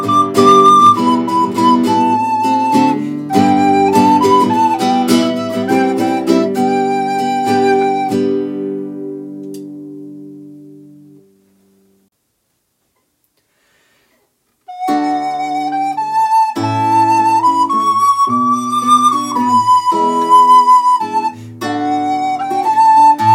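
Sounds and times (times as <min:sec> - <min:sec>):
flute playing an Advent song: 0:00.0 - 0:09.0, 0:14.7 - 0:23.3
guitar playing an Advent song: 0:00.0 - 0:12.1, 0:14.6 - 0:23.3.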